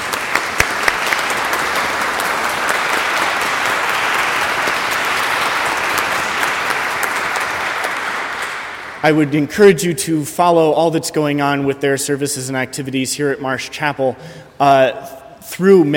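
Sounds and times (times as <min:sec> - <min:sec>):
chapel congregation at a Sunday service applauding guests: 0:00.0 - 0:09.4
speech: 0:09.0 - 0:15.9.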